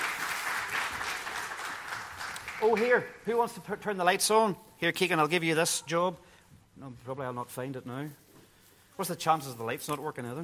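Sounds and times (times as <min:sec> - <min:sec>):
applause at a festive gathering for the Christmas tree decorators: 0:00.0 - 0:03.1
speech: 0:02.6 - 0:08.2, 0:09.0 - 0:10.4.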